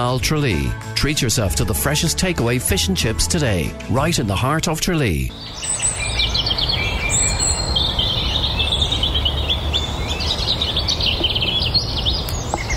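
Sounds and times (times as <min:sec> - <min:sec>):
speech: 0:00.0 - 0:06.5
dawn chorus of many birds singing: 0:05.3 - 0:12.7.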